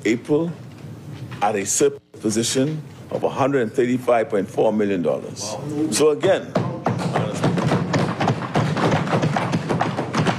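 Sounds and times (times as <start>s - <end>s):
speech: 0.0s - 0.6s, 1.4s - 7.3s
members of parliament banging on desks: 6.4s - 10.3s.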